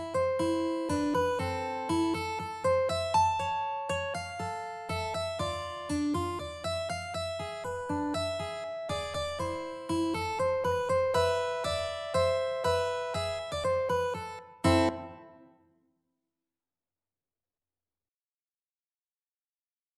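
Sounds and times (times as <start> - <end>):
mandolin melody: 0.0 - 15.4.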